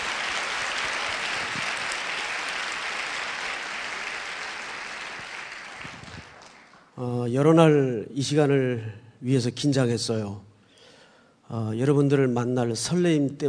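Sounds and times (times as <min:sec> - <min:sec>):
crowd applauding to welcome newcomers: 0:00.0 - 0:07.0
speech: 0:07.0 - 0:10.5, 0:11.5 - 0:13.4.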